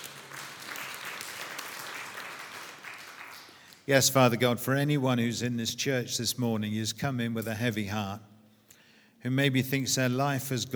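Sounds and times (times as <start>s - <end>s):
audience applause: 0.0s - 3.9s
speech: 3.9s - 8.3s, 9.2s - 10.7s.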